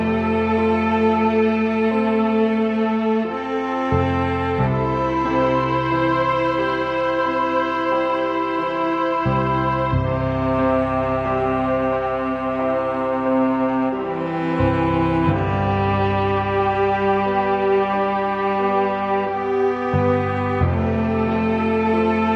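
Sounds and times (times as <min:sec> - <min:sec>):
lounge cello music: 0:00.0 - 0:22.3.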